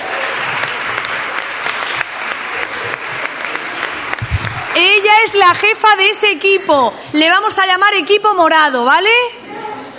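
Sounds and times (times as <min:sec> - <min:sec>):
audience applause: 0:00.0 - 0:05.4
speech: 0:05.2 - 0:09.4.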